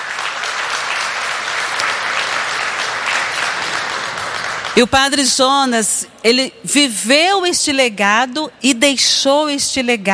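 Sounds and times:
audience applause: 0:00.0 - 0:04.8
speech: 0:04.8 - 0:10.1.

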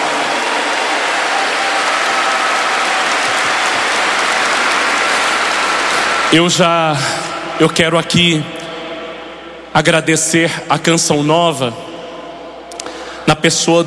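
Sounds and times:
audience applause: 0:00.0 - 0:07.0
speech: 0:06.3 - 0:08.6, 0:09.8 - 0:11.9, 0:13.3 - 0:13.8.

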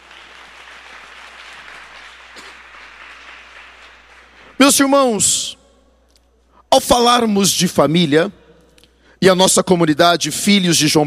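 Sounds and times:
audience applause: 0:00.0 - 0:04.7
speech: 0:04.7 - 0:05.6, 0:06.8 - 0:08.4, 0:09.2 - 0:11.0.

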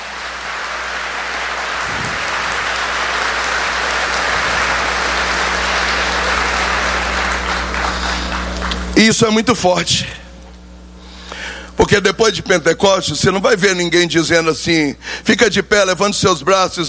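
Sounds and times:
crowd applause: 0:00.0 - 0:09.0
speech: 0:09.0 - 0:10.2, 0:11.8 - 0:16.8.

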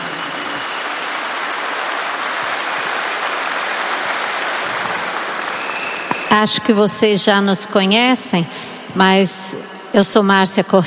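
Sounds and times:
audience applause: 0:00.0 - 0:06.3
speech: 0:06.3 - 0:10.8.

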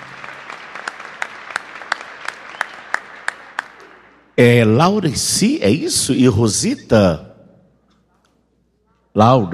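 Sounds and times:
audience applauding: 0:00.0 - 0:04.4
speech: 0:04.4 - 0:07.3, 0:09.2 - 0:09.5.

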